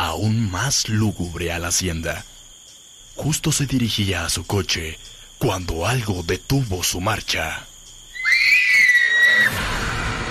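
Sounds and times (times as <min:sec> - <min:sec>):
speech: 0:00.2 - 0:02.4, 0:03.2 - 0:07.7
women screaming in terror: 0:08.2 - 0:10.3.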